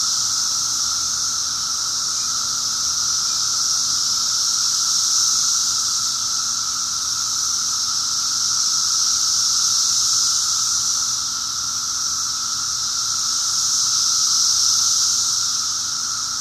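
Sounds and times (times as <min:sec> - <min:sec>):
cicadas buzzing in a high sizzling chorus: 0:00.0 - 0:16.3.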